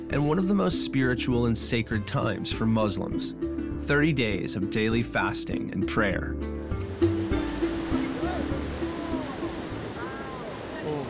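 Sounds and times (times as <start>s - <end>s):
speech: 0.1s - 6.6s
ocean waves breaking: 6.6s - 11.0s.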